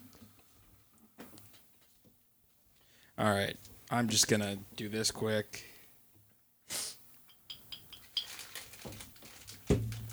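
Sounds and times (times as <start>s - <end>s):
speech: 3.2s - 5.7s
paper snack wrapper being crunched: 8.1s - 10.1s.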